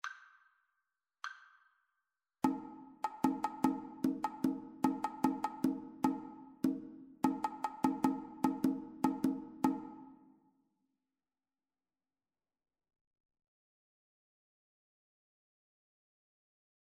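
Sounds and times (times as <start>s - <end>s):
two-part rhythm: 2.4s - 10.2s.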